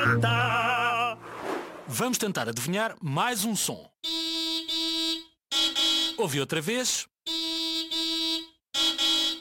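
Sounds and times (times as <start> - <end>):
speech: 0.1 - 0.6, 1.9 - 4.2, 6.2 - 7.4
car horn honking: 4.0 - 6.2, 7.3 - 9.3.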